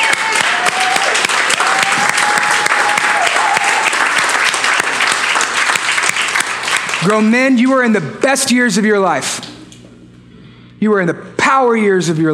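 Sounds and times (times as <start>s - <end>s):
audience applause: 0.0s - 7.3s
speech: 7.0s - 9.5s, 10.8s - 12.3s.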